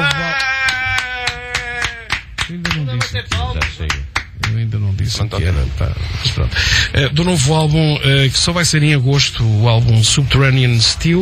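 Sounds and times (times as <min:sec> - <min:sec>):
hands clapping: 0:00.0 - 0:04.6
speech: 0:04.6 - 0:11.2.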